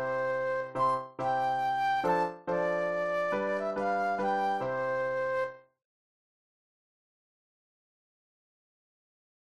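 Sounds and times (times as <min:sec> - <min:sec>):
solo flute playing a classical waltz: 0:00.0 - 0:05.6.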